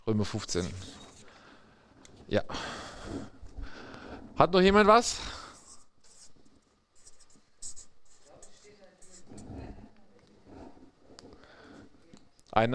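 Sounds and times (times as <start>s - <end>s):
speech: 0.1s - 1.0s, 2.3s - 3.4s, 4.4s - 5.4s, 12.5s - 12.7s
pen scratching out writing during a Bible lesson: 5.5s - 11.2s.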